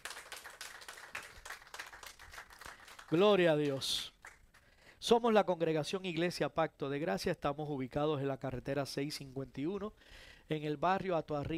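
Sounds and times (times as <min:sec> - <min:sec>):
audience applause: 0:00.0 - 0:04.4
speech: 0:03.1 - 0:04.1, 0:05.0 - 0:11.5.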